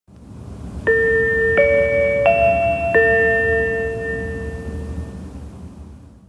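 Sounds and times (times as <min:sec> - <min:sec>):
chime: 0:00.9 - 0:05.4.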